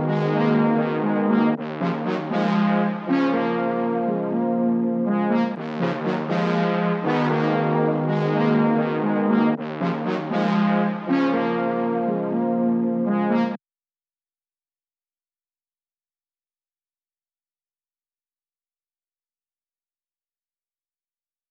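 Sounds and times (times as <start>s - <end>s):
brass in F minor: 0.0s - 13.6s.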